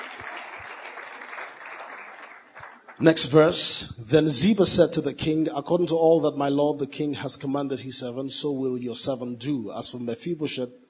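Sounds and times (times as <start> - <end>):
audience clapping: 0.0 - 3.4
speech: 3.0 - 10.8.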